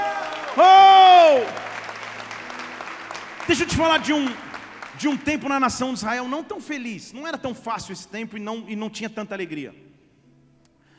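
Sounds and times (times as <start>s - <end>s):
audience applauding: 0.0s - 6.8s
speech: 3.5s - 4.4s, 5.0s - 9.8s.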